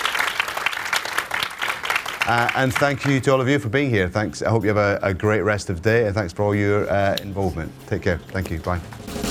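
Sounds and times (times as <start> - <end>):
audience applause after a panel discussion: 0.0 - 3.2
speech: 2.3 - 9.2.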